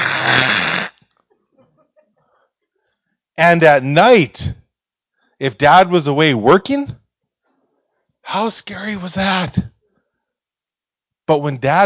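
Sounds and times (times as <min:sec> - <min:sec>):
voice imitating a weird furnace noise: 0:00.0 - 0:00.9
speech: 0:03.4 - 0:04.6, 0:05.4 - 0:07.0, 0:08.2 - 0:09.7, 0:11.3 - 0:11.8.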